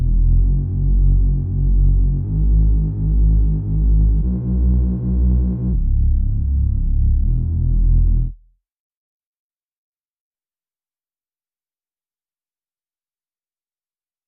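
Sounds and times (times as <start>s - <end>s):
bass underscore: 0.0s - 8.5s.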